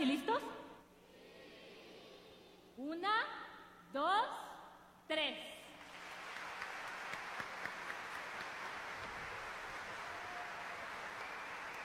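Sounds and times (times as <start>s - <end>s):
speech: 2.8s - 4.5s, 5.1s - 5.6s
audience applause: 5.8s - 11.8s.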